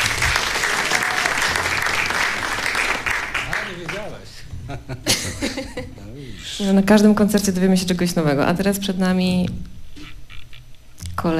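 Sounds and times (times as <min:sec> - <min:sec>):
audience applause: 0:00.0 - 0:04.3
laughter: 0:04.4 - 0:06.2
speech: 0:06.6 - 0:09.7.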